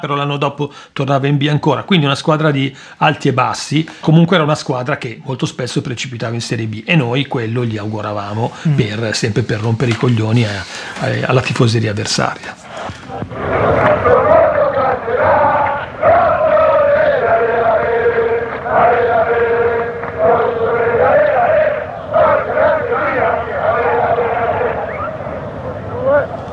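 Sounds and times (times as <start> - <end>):
speech: 0.0 - 14.5
football fans singing encouragement chant: 13.1 - 26.5.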